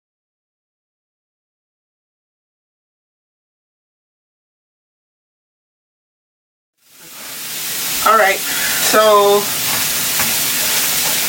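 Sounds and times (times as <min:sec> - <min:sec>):
rice sizzling in a hot pan: 0:06.8 - 0:11.2
speech: 0:08.2 - 0:09.6.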